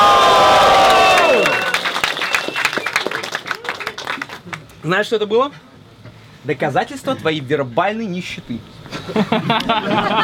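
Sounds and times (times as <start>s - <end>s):
concert crowd cheering: 0.0s - 4.6s
speech: 4.9s - 5.7s, 6.4s - 10.2s
laughter: 8.9s - 10.2s.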